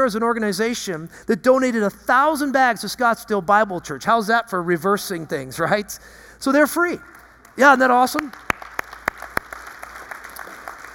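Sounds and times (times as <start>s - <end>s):
speech: 0.0s - 8.4s
audience clapping: 7.1s - 10.9s.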